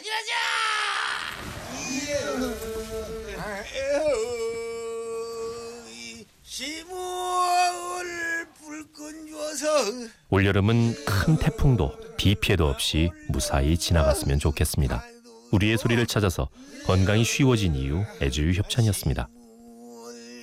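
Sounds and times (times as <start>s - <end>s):
speech: 0.1s - 0.7s, 9.8s - 19.4s
fishermen chanting while hauling boats ashore: 1.4s - 20.4s.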